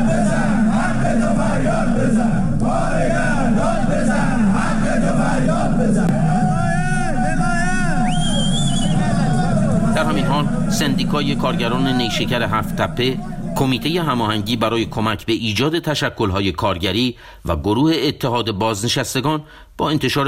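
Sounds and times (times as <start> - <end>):
striking factory workers chanting slogans at a protest rally: 0.0 - 14.6
speech: 10.8 - 20.2.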